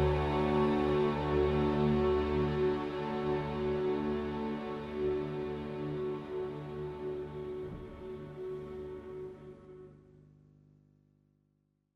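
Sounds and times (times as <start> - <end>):
slow minor piano and strings: 0.0 - 9.4.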